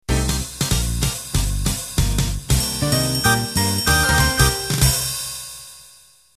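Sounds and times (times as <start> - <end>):
ballroom swing music: 0.0 - 5.4.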